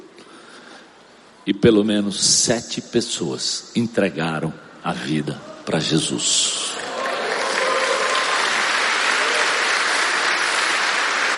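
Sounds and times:
speech: 0:01.5 - 0:06.6
audience applauding: 0:06.7 - 0:11.3.

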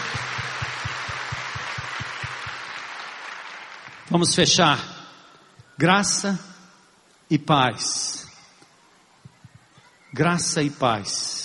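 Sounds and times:
applause: 0:00.0 - 0:04.6
speech: 0:04.1 - 0:04.9, 0:05.8 - 0:06.5, 0:07.3 - 0:08.2, 0:10.2 - 0:11.4.

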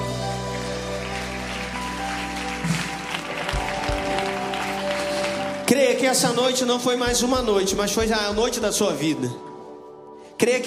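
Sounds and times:
audience applauding: 0:00.0 - 0:07.5
speech: 0:05.7 - 0:09.5, 0:10.4 - 0:10.6.

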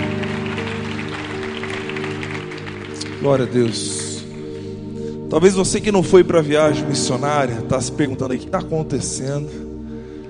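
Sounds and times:
audience applauding: 0:00.0 - 0:04.8
speech: 0:03.2 - 0:04.0, 0:05.3 - 0:09.7.

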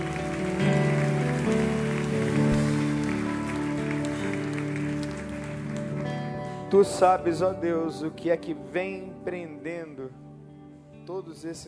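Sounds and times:
audience applauding loudly: 0:00.0 - 0:07.2
speech: 0:06.7 - 0:10.2, 0:11.1 - 0:11.6.

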